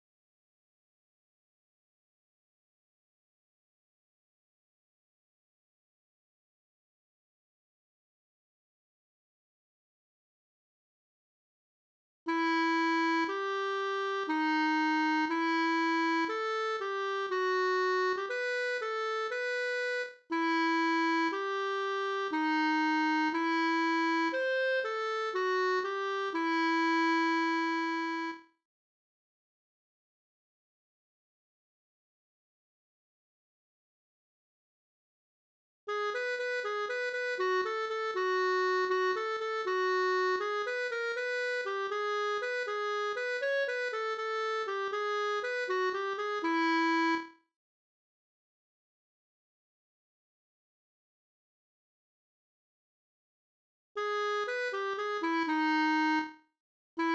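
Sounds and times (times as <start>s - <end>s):
kazoo: 12.4s - 28.4s, 35.9s - 47.4s, 54.0s - 56.4s.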